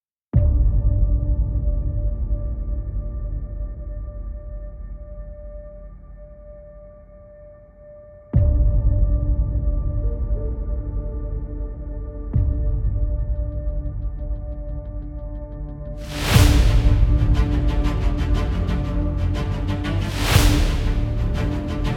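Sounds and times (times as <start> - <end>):
epic action cinematic trailer music: 0.4 - 7.6, 8.4 - 21.9.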